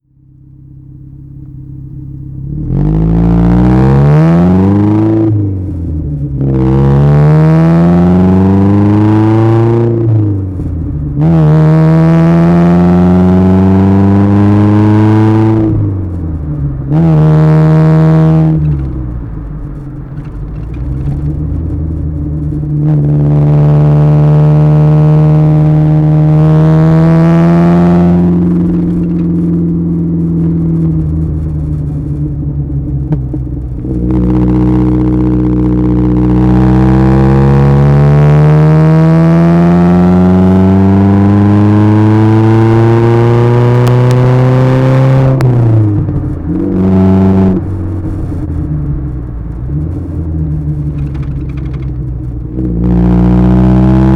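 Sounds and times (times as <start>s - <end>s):
Alfa Romeo Spider with Weber twin carburettor exhaust climbing uphill: 0.0s - 54.1s.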